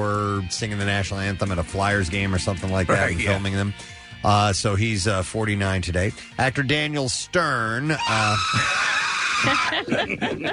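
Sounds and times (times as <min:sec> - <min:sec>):
speech: 0:00.4 - 0:10.5
man screaming: 0:07.9 - 0:09.8
laughter: 0:08.0 - 0:10.5.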